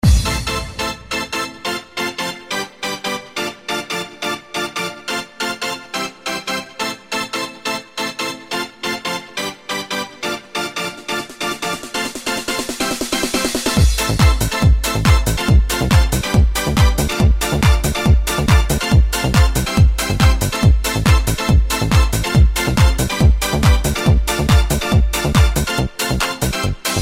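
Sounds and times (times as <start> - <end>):
classic trance music: 0.0 - 26.9.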